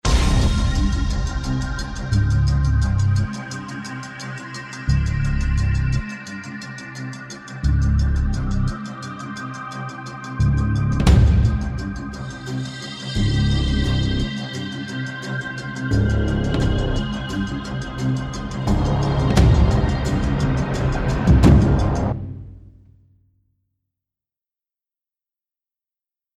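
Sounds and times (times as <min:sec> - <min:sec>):
music: 0:00.0 - 0:23.6.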